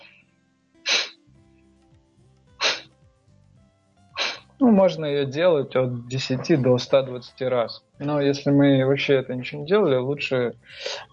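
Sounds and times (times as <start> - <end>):
forceful hissing breaths in pranayama: 2.6 - 2.9, 4.2 - 4.5
speech: 4.6 - 11.1.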